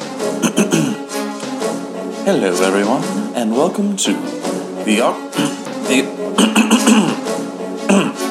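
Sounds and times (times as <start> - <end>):
awkward throat clearing: 0.4 - 1.0, 5.4 - 5.6, 6.4 - 7.2, 7.9 - 8.2
speech: 2.3 - 7.1.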